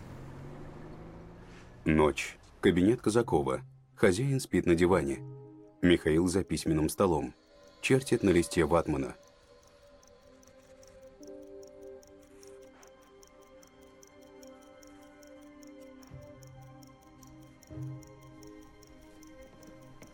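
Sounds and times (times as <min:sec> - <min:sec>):
speech: 0:01.8 - 0:09.2
alarm clock ticking at night in an office: 0:06.2 - 0:20.1.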